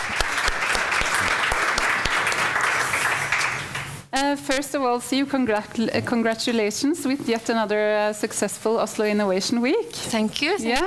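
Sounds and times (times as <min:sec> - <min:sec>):
audience applause: 0:00.0 - 0:04.1
speech: 0:04.2 - 0:10.8.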